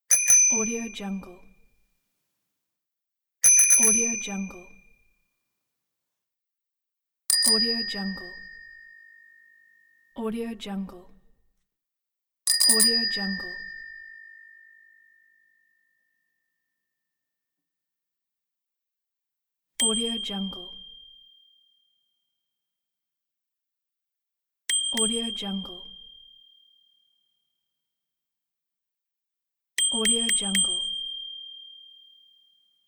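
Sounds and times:
bicycle bell: 0.1 - 1.0, 3.4 - 5.0, 7.3 - 10.2, 12.5 - 16.5, 19.8 - 22.2, 24.7 - 27.4, 29.8 - 32.8.

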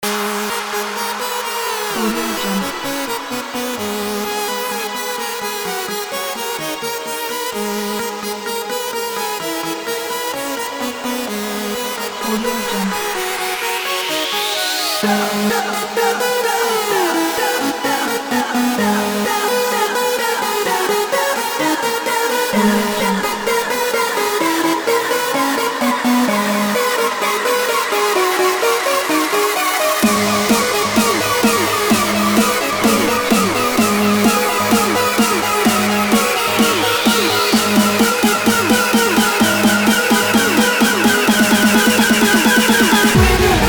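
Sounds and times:
EDM festival music: 0.0 - 43.6.

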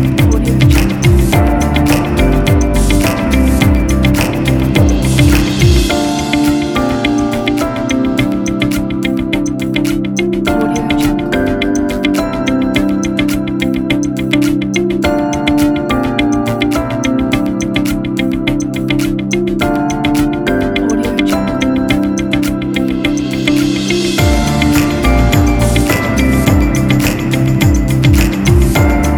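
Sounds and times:
upbeat corporate tech music: 0.0 - 29.1.

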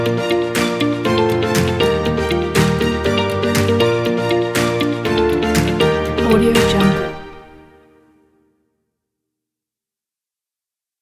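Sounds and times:
uplifting inspirational corporate music: 0.0 - 8.2.

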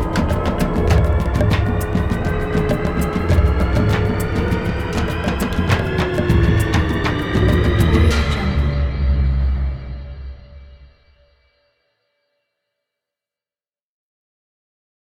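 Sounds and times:
dark mysterious percussion: 0.0 - 10.1.

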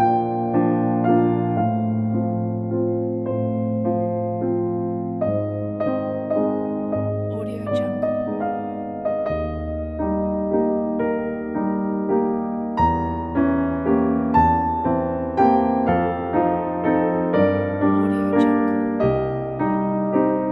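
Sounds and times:
classical piano: 0.0 - 20.5.

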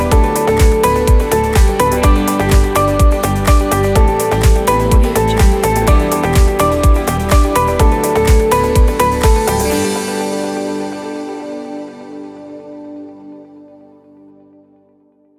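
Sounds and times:
upbeat corporate dance music: 0.0 - 11.8.

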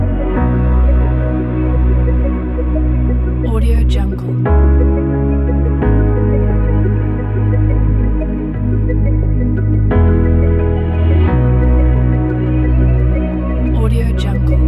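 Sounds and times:
documentary background music: 0.0 - 14.6.

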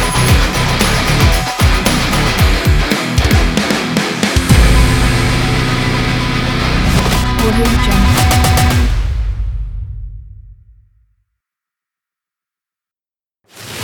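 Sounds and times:
powerful rock music: 0.0 - 10.0.

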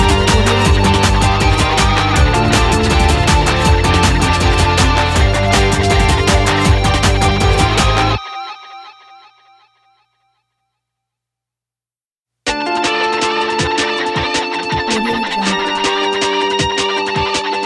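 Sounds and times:
rock breakbeats: 0.0 - 8.2, 12.5 - 17.6.

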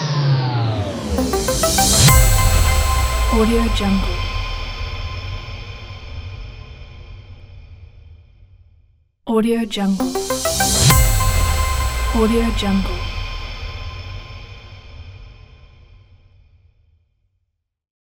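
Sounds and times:
technology logo sting: 0.2 - 6.6, 9.9 - 15.3.

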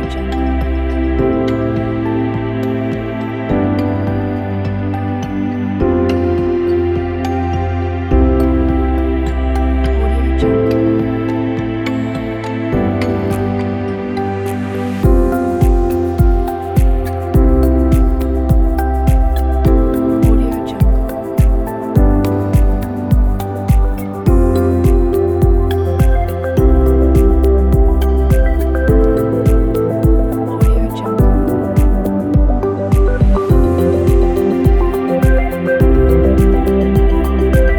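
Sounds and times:
minimal ambient background: 0.0 - 37.7.

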